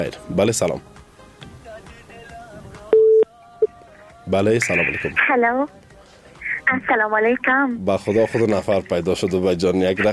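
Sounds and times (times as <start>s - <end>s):
speech: 0.0s - 1.0s, 4.3s - 5.8s, 6.7s - 10.1s
telephone line tone while a call is being connected: 2.9s - 3.3s.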